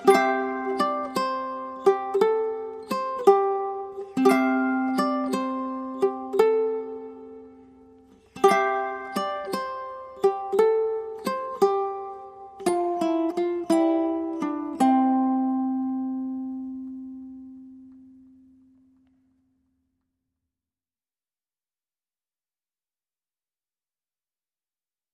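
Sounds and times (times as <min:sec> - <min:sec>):
ukulele playing a lullaby: 0:00.0 - 0:19.6.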